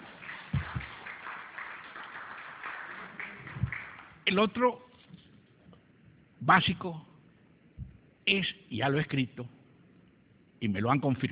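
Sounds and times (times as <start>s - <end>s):
audience applause: 0.0s - 4.3s
speech: 4.3s - 4.9s, 6.4s - 7.1s, 8.3s - 9.6s, 10.6s - 11.2s.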